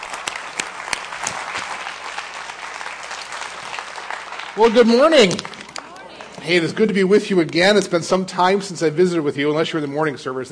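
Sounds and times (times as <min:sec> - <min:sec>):
audience applause welcoming a speaker: 0:00.0 - 0:06.9
speech: 0:04.6 - 0:05.5, 0:06.4 - 0:10.4.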